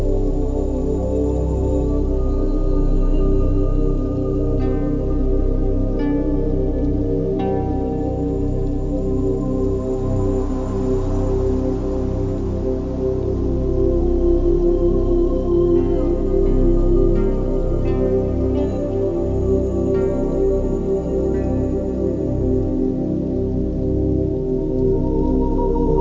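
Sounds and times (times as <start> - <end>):
gothic ambient background music at 432Hz: 0.0 - 25.9.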